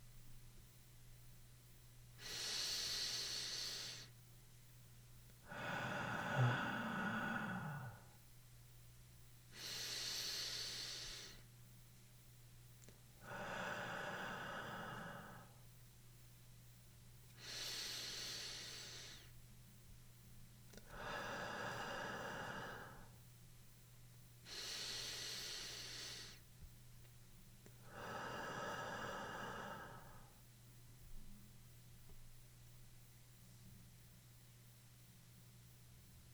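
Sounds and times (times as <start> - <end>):
slow rhythmic human breathing: 2.2 - 4.1, 5.4 - 8.2, 9.5 - 11.4, 13.2 - 15.6, 17.4 - 19.4, 20.7 - 23.2, 24.4 - 26.5, 27.6 - 30.4.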